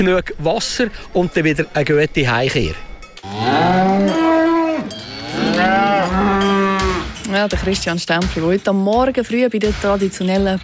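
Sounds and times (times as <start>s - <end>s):
speech: 0.0s - 4.2s, 7.3s - 10.6s
cows mooing: 3.2s - 7.2s.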